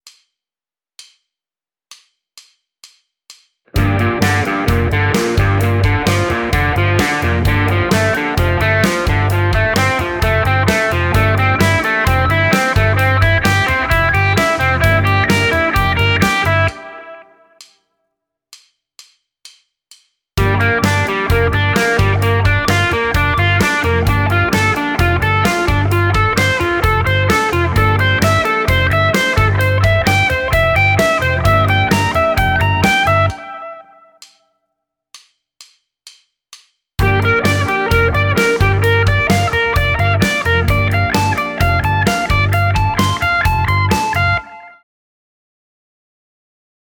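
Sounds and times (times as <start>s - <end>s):
blues arpeggios on Gm13: 3.7s - 17.4s, 20.4s - 34.1s, 37.0s - 44.8s.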